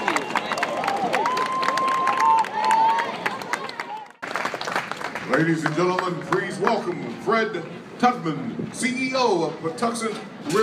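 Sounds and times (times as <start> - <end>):
audience applause and cheers for a reverend: 0.0 - 6.5
speech: 5.3 - 10.6.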